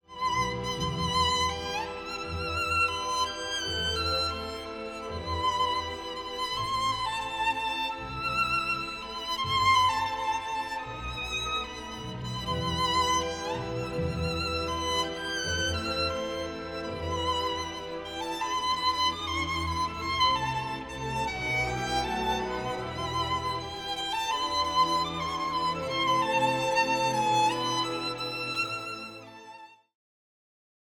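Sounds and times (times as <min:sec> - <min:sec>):
violin concerto: 0:00.0 - 0:29.9.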